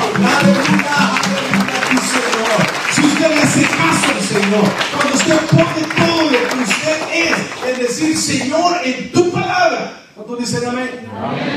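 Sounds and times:
audience applauding: 0:00.0 - 0:08.7
speech: 0:04.4 - 0:06.0, 0:08.0 - 0:11.5.

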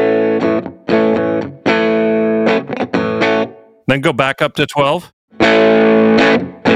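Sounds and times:
electric guitar through amp with gain turned down strumming chords: 0:00.0 - 0:03.8, 0:05.3 - 0:06.7
speech: 0:03.9 - 0:06.7.

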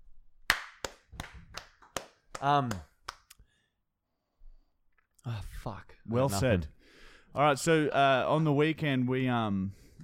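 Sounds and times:
hand clapping: 0:00.5 - 0:03.4
speech: 0:02.4 - 0:02.9, 0:05.2 - 0:06.8, 0:07.4 - 0:10.0.

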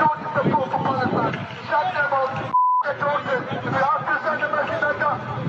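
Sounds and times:
protest crowd shouting: 0:00.2 - 0:05.4
censor bleep: 0:02.5 - 0:02.9.

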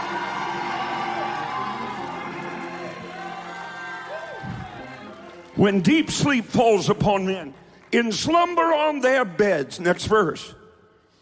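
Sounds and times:
high whoop: 0:00.0 - 0:05.1
audience shouting and cheering: 0:00.0 - 0:06.4
speech: 0:05.6 - 0:10.6.

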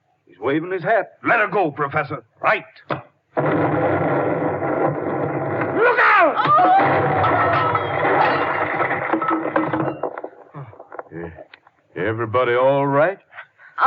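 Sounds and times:
speech: 0:00.4 - 0:04.0, 0:11.1 - 0:13.8
fuel tanks exploding, radio drama effect: 0:03.4 - 0:11.2.

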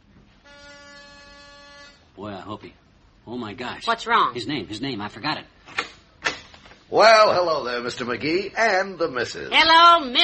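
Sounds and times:
door buzzer being pressed: 0:00.4 - 0:02.1
speech: 0:02.2 - 0:05.6, 0:06.9 - 0:10.2.

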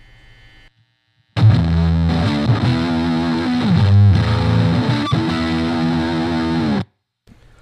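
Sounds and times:
electric guitar through a distortion pedal with crunchy mid-gain tone: 0:00.8 - 0:07.0.

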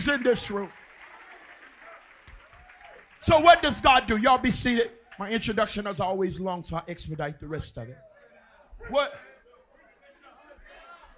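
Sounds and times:
speech: 0:00.0 - 0:00.8, 0:03.2 - 0:08.1, 0:08.8 - 0:09.3
audience hand clapping: 0:00.0 - 0:05.2.

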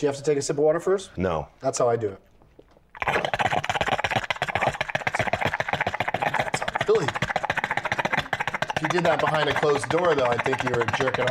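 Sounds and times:
speech: 0:00.0 - 0:02.3, 0:08.9 - 0:11.2
voice imitating a bong hit: 0:03.0 - 0:11.2.

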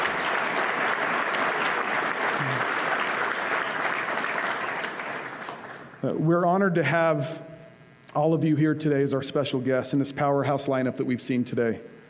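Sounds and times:
audience applause: 0:00.0 - 0:05.9
speech: 0:06.0 - 0:07.5, 0:08.2 - 0:12.0.

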